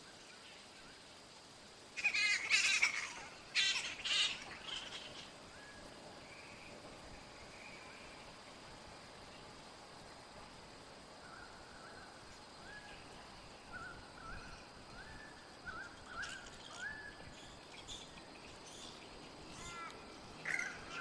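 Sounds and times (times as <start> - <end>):
steady faint hiss: 0.0 - 20.9
grey-headed flying foxes chattering: 2.0 - 5.4, 12.7 - 20.9.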